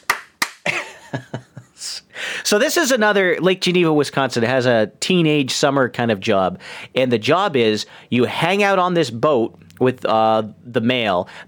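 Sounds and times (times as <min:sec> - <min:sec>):
sharp hand claps: 0:00.0 - 0:00.8
speech: 0:01.1 - 0:01.4, 0:02.5 - 0:11.4.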